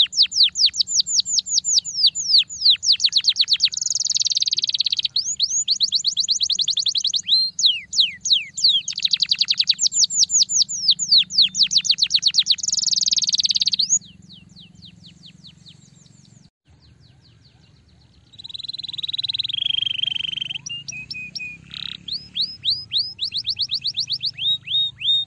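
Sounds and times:
Belgian canary singing rolling tours and buzzy trills: 0.0 - 25.2.

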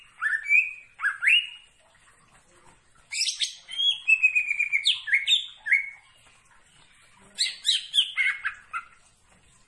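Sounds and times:
leafbird singing varied whistles and chattering notes: 0.0 - 1.7, 3.1 - 6.0, 7.4 - 9.0.

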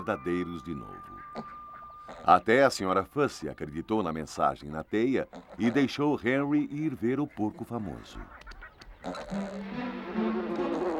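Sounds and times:
speech: 0.0 - 1.5, 2.3 - 8.4, 9.0 - 10.9
bee buzzing: 9.0 - 10.9.

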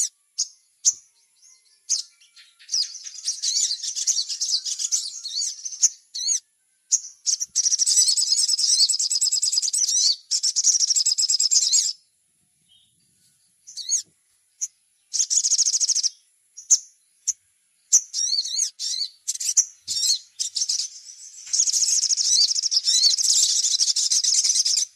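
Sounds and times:
little spiderhunter trilling song: 1.9 - 12.0, 14.6 - 16.9, 17.9 - 24.9.

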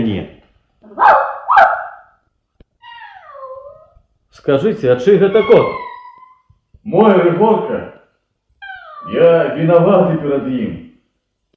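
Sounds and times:
speech: 0.1 - 1.3, 4.4 - 5.9, 6.8 - 7.9, 9.0 - 10.8
dog barking: 0.9 - 2.2.

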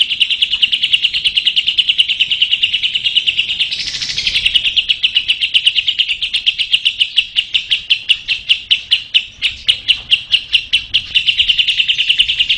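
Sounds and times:
lovebird chattering: 0.0 - 12.5.

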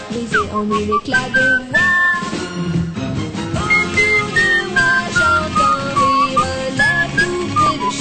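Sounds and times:
several people whistling a tune together: 0.3 - 2.5, 3.7 - 7.9.

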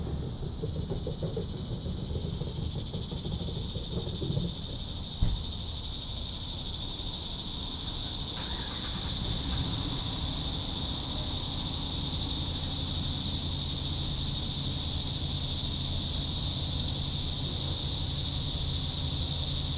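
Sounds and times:
knock: 0.0 - 5.5
cicadas droning: 0.0 - 19.7.

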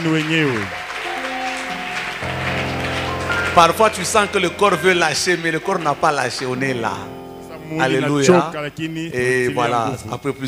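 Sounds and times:
speech: 0.0 - 0.8, 3.6 - 10.4
church congregation applauding: 0.0 - 8.6
sustained keyboard tones: 0.9 - 9.9.

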